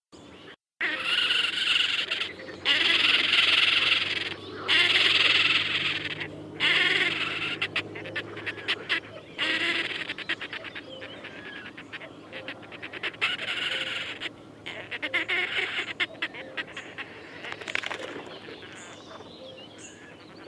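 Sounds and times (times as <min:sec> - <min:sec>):
red-necked grebe calling: 0:00.8 - 0:20.4.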